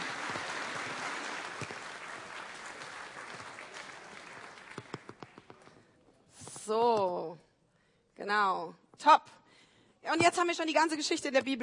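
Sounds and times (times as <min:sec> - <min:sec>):
applause: 0:00.0 - 0:05.7
speech: 0:06.7 - 0:06.9, 0:08.3 - 0:09.4, 0:10.2 - 0:11.6.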